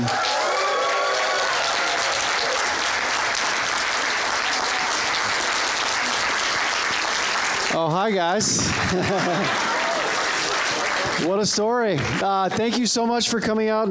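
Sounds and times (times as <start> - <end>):
audience applause: 0.0 - 13.3
speech: 8.1 - 9.7, 11.2 - 13.8
laughter: 8.5 - 11.1.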